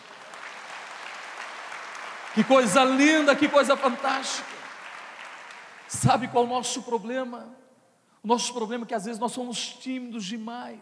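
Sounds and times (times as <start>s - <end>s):
audience applause: 0.0s - 6.0s
speech: 2.3s - 4.6s, 5.9s - 7.6s, 8.2s - 10.7s.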